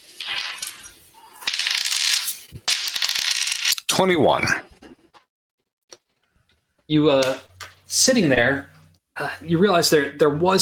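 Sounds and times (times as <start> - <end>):
dice rattling and clattering: 1.4 - 3.8
speech: 4.0 - 4.6, 6.9 - 10.6.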